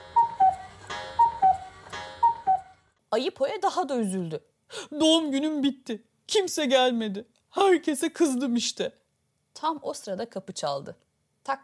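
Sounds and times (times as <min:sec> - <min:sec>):
cuckoo clock calling: 0:00.0 - 0:02.7
speech: 0:03.1 - 0:09.0, 0:09.6 - 0:11.6.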